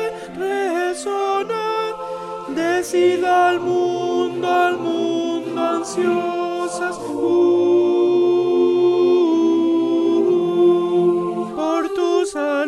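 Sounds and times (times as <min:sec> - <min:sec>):
alto voices singing: 0:00.0 - 0:12.6.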